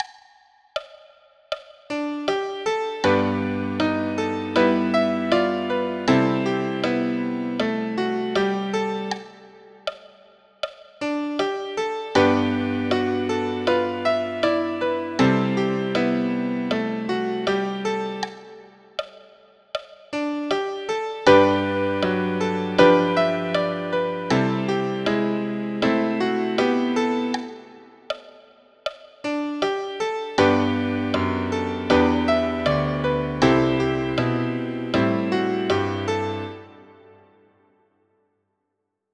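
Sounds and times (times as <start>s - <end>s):
folk melody with line cliches in major: 1.9s - 9.2s, 11.1s - 18.5s, 20.2s - 27.7s, 29.3s - 37.1s.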